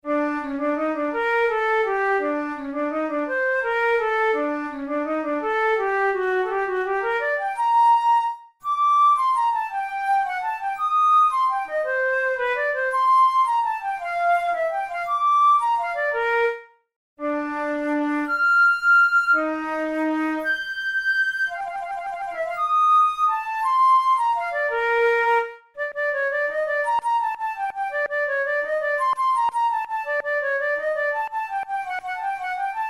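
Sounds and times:
studies for the Boehm flute: 0.0s - 32.8s.

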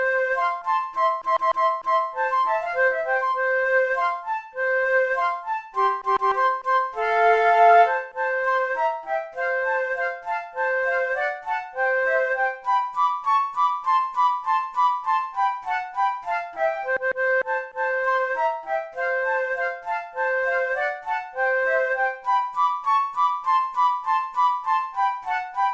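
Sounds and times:
flute waltz duet: 0.0s - 25.7s.

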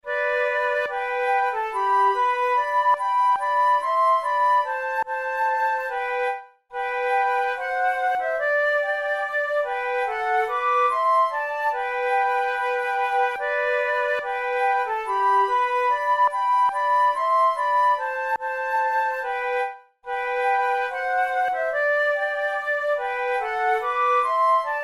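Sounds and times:
flute duet: 0.0s - 24.8s.

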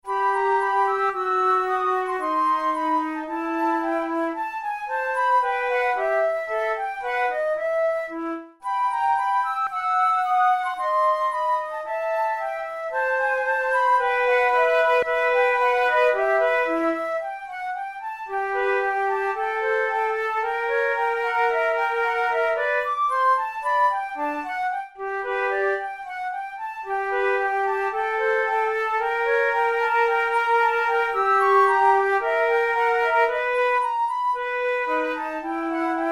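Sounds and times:
flute method exercise: 0.0s - 36.1s.

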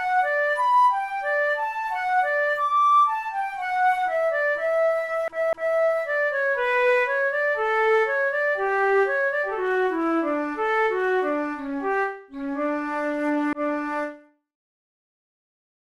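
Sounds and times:
flute: 0.0s - 14.4s.

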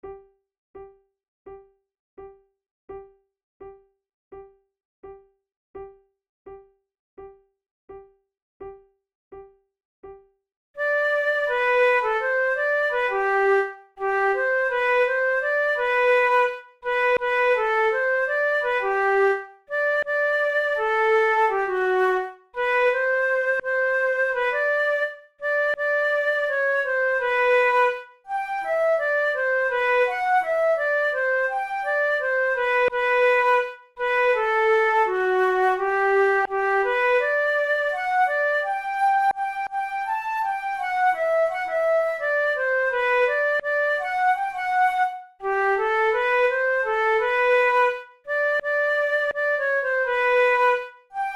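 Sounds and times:
flute duet: 10.8s - 51.3s.

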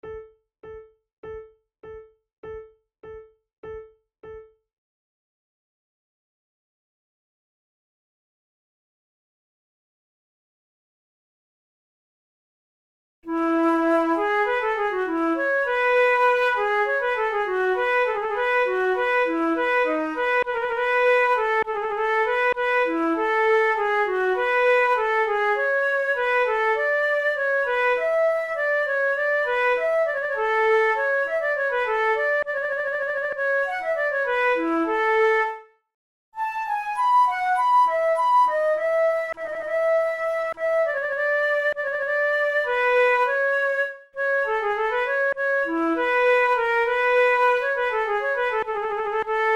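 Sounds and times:
two flutes playing a fugue: 13.3s - 35.7s, 36.4s - 49.5s.

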